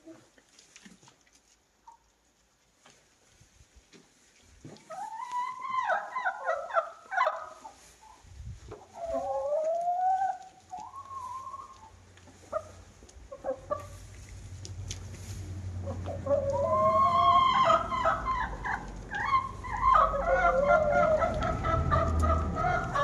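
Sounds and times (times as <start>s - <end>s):
chickens clucking and cackling: 4.7s - 23.0s.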